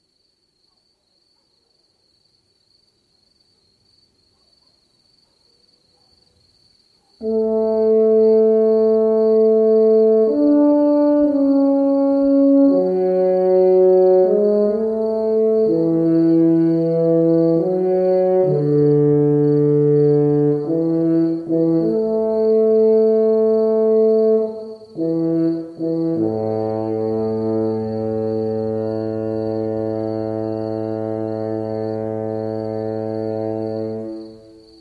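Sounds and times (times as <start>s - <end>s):
funeral horn: 7.2s - 34.7s.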